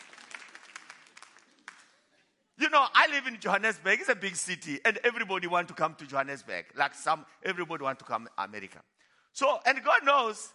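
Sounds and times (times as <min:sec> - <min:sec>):
audience clapping: 0:00.0 - 0:02.1
speech: 0:02.7 - 0:10.5.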